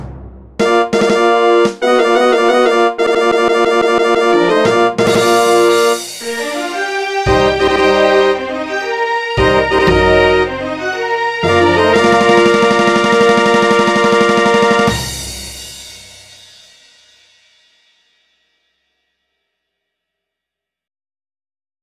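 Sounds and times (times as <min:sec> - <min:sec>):
fanfare: 0:00.6 - 0:15.5.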